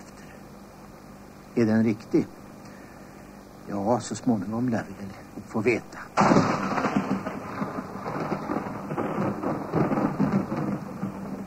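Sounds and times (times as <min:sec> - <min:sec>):
speech: 0:01.6 - 0:02.4, 0:03.7 - 0:06.5
thunder: 0:06.2 - 0:11.4.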